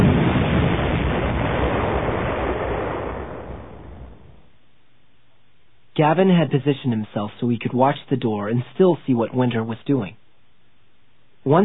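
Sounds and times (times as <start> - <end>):
missiles firing and hitting target: 0.0 - 4.4
speech: 6.0 - 10.2, 11.4 - 11.6.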